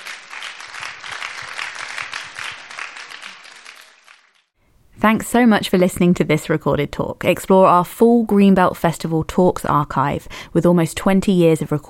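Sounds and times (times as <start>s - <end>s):
audience applause: 0.0s - 4.6s
speech: 5.0s - 11.8s.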